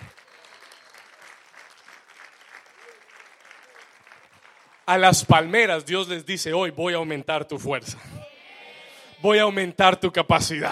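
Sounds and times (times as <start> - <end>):
loud applause: 0.0 - 5.8
speech: 4.9 - 8.1, 9.2 - 10.7.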